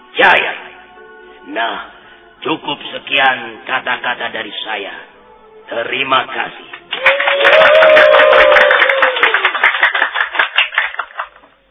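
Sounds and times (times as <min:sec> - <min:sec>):
speech: 0:00.2 - 0:00.6, 0:01.5 - 0:05.1, 0:05.7 - 0:08.6
loud crowd applause: 0:06.9 - 0:11.6.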